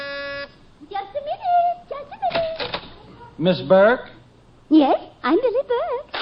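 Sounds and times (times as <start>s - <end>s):
door buzzer being pressed: 0.0s - 0.6s
speech: 3.4s - 4.1s, 4.7s - 6.1s.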